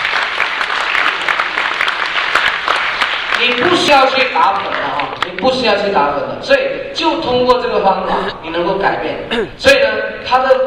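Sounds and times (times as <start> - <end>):
audience applause at a product presentation: 0.0 - 3.7
speech: 3.4 - 10.6.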